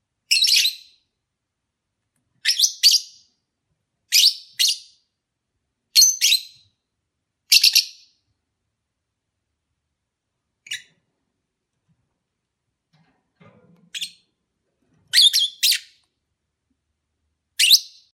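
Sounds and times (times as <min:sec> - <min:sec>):
lovebird chirps during courtship: 0:00.3 - 0:01.0, 0:02.4 - 0:03.2, 0:04.1 - 0:05.0, 0:06.0 - 0:06.8, 0:07.5 - 0:08.2, 0:10.6 - 0:11.0, 0:13.9 - 0:14.3, 0:15.1 - 0:16.0, 0:17.6 - 0:18.1.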